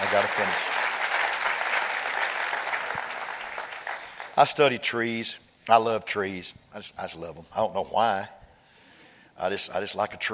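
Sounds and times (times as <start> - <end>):
audience clapping hands: 0.0 - 4.5
speech: 0.1 - 0.8, 4.4 - 8.4, 9.4 - 10.3.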